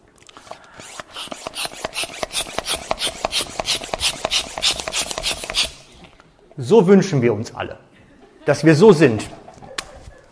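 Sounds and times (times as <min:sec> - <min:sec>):
balloon being inflated and handled: 0:00.4 - 0:06.0
speech: 0:06.6 - 0:07.9, 0:08.5 - 0:09.4.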